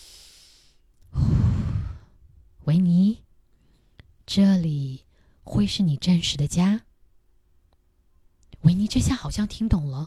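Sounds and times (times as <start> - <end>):
deep breath: 0.0 - 2.3
speech: 4.4 - 6.9, 8.6 - 10.0.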